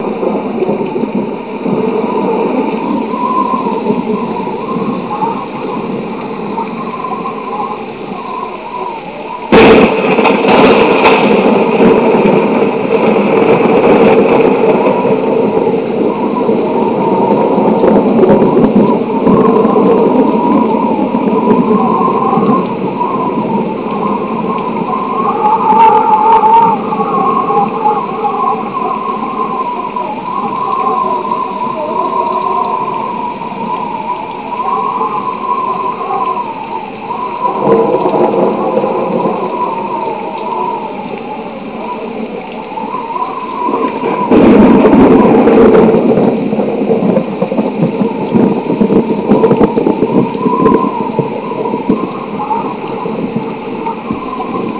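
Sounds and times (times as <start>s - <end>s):
rain: 0.0s - 54.7s.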